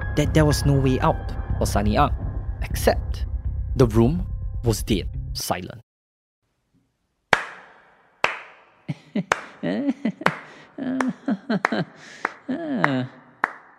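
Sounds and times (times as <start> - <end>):
speech: 0.2 - 5.8, 9.2 - 13.2
single hand clap in silent courtroom: 7.3 - 8.7, 9.3 - 9.6, 10.2 - 13.7
laughter: 8.9 - 13.2.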